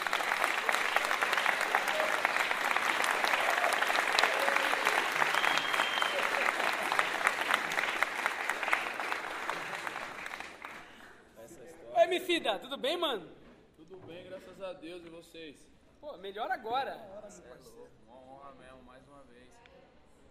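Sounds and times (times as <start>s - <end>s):
audience applause: 0.0s - 11.1s
speech: 12.5s - 13.4s, 14.6s - 18.0s.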